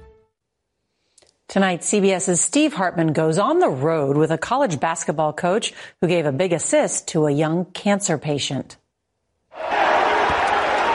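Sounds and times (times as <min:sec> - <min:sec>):
speech: 0:01.5 - 0:08.8
basketball game crowd cheering: 0:09.6 - 0:10.9.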